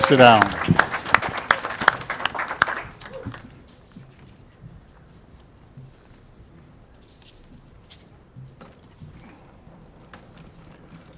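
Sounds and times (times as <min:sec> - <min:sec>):
audience welcome applause: 0:00.0 - 0:03.6.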